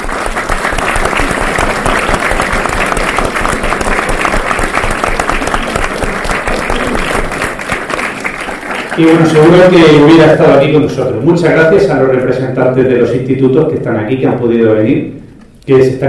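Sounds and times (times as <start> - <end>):
large audience applause: 0.0 - 10.8
speech: 9.0 - 16.0.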